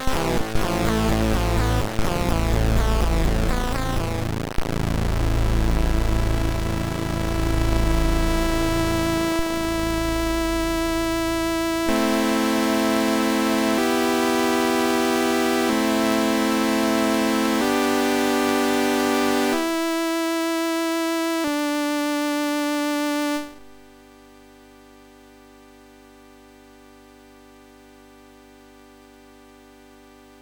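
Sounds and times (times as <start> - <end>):
SID MOS6581R2 chiptune: 0.0 - 23.7.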